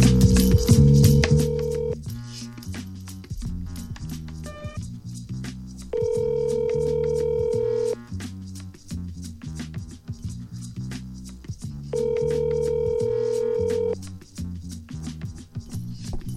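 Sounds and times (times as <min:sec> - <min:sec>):
telephone ringing out on a call to a friend: 0:00.1 - 0:02.0, 0:05.9 - 0:08.0, 0:12.0 - 0:14.0.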